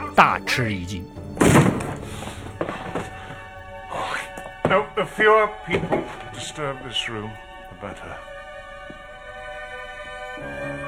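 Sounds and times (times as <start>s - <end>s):
speech: 0.2s - 1.2s, 4.7s - 8.3s
door being smashed open: 1.4s - 2.0s.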